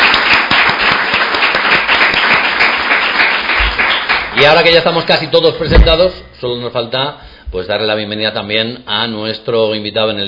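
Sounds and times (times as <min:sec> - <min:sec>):
audience applause: 0:00.0 - 0:04.8
speech: 0:04.4 - 0:10.2.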